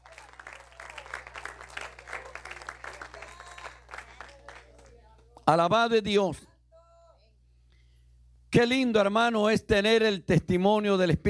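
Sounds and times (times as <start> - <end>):
audience applauding: 0.0 - 5.4
speech: 5.5 - 6.5, 8.5 - 11.2.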